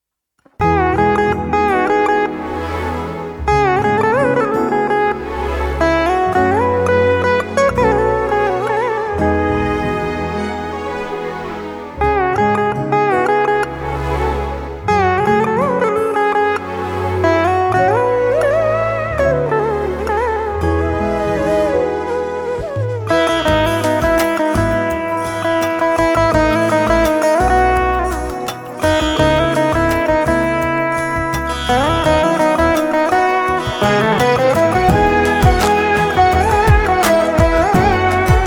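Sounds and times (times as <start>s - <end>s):
instrumental music: 0.4s - 38.4s.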